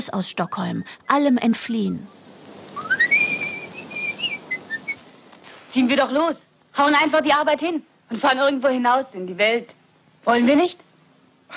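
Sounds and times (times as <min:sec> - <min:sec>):
speech: 0:00.0 - 0:02.2, 0:05.7 - 0:10.9
light hiss: 0:00.0 - 0:11.5
person whistling a cheerful melody: 0:02.8 - 0:05.1.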